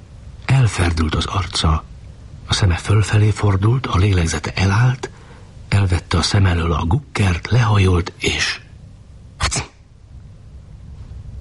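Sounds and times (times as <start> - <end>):
speech: 0.7 - 1.9, 2.5 - 5.1, 5.7 - 8.6
person sneezing: 9.4 - 9.8.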